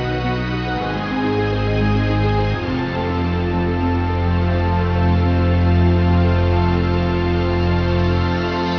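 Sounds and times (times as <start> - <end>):
victory music: 0.0 - 8.7.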